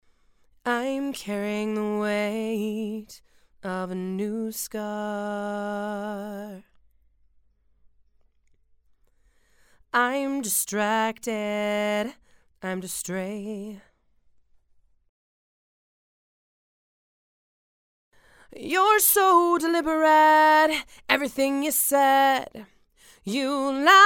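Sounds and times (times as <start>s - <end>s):
female vocals: 0.6s - 6.8s, 9.9s - 13.9s, 18.4s - 24.0s.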